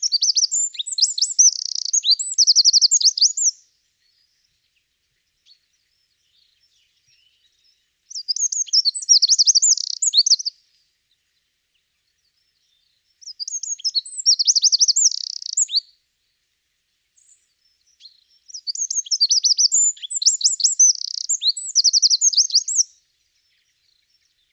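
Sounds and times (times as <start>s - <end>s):
Troglodytes troglodytes: 0.0s - 3.6s, 8.1s - 10.6s, 13.2s - 15.9s, 17.2s - 24.5s.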